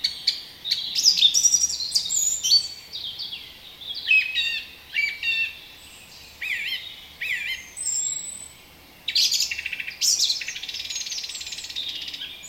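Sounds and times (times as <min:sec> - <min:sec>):
Turdus philomelos bird in a hedge: 0:00.0 - 0:12.4.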